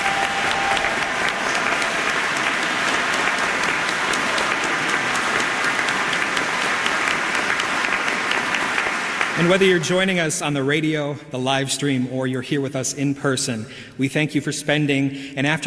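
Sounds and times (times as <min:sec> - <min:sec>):
audience round of applause: 0:00.0 - 0:10.1
speech: 0:09.4 - 0:15.6.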